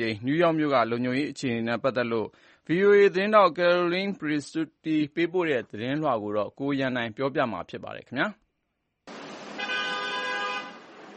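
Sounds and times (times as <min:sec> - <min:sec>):
speech: 0:00.0 - 0:08.4
New York street traffic roar: 0:09.1 - 0:11.1
car horn in New York street traffic: 0:09.4 - 0:11.0.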